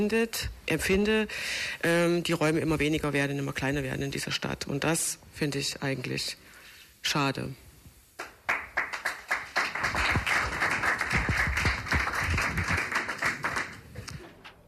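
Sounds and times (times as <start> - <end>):
speech: 0.0 - 7.6
audience applause: 8.2 - 14.3.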